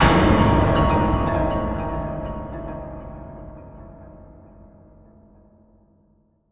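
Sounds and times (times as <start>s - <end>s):
horror music sting: 0.0s - 4.7s.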